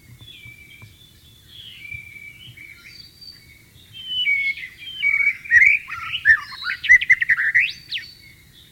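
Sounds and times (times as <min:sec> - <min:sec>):
white-rumped shama singing: 0:01.5 - 0:08.4.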